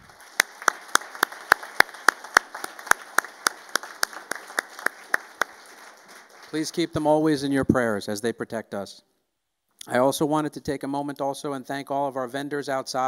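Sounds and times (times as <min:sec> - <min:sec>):
round of applause: 0:00.0 - 0:07.0
speech: 0:06.5 - 0:09.1, 0:09.8 - 0:13.0.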